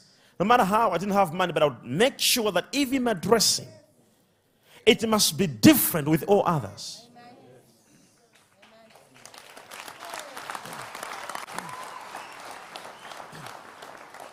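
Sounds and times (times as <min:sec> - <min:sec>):
speech: 0:00.4 - 0:03.8, 0:04.8 - 0:07.0
crowd audience clapping hands: 0:08.2 - 0:14.3.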